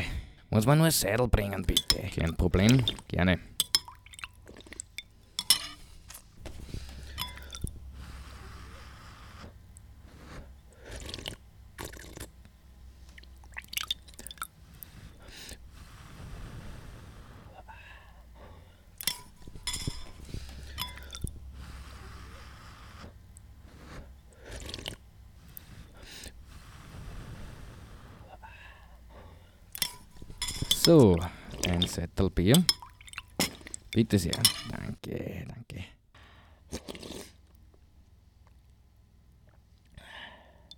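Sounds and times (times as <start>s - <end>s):
low steady hum: 0.0s - 36.6s
speech: 0.5s - 3.6s, 32.4s - 32.8s, 34.0s - 34.7s
soup slurping at a table: 1.4s - 17.3s, 19.0s - 28.3s, 29.7s - 34.8s, 36.7s - 37.6s
spoon clinking against dishes while eating soup: 1.6s - 7.8s, 19.0s - 21.4s, 29.8s - 34.9s.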